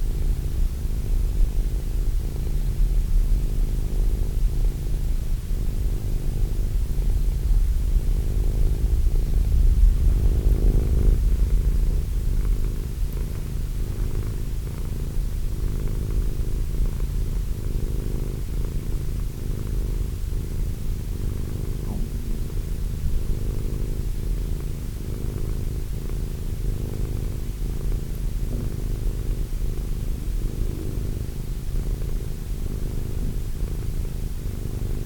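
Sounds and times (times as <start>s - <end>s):
cat purring: 0.0s - 35.0s.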